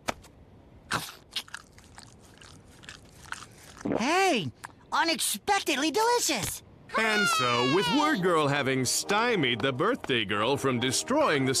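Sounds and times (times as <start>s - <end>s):
biting and chewing a meatloaf cupcake: 0.9s - 4.8s
speech: 4.0s - 11.5s.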